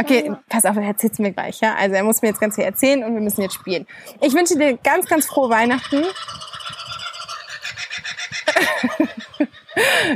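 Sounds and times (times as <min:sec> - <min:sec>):
speech: 0:00.0 - 0:06.7, 0:08.6 - 0:10.1
parrots calling: 0:04.9 - 0:09.1
laughter: 0:08.2 - 0:10.1.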